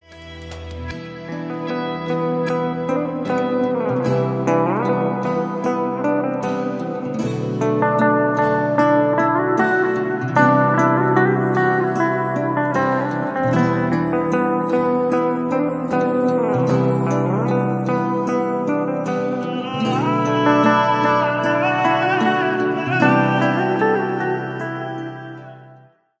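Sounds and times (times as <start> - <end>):
instrumental tone: 0.1 - 26.0.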